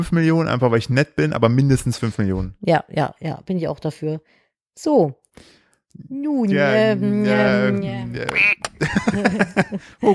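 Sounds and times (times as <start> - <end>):
speech: 0.0 - 10.1
laughter: 6.5 - 10.1
duck quack sound effect: 8.3 - 8.7.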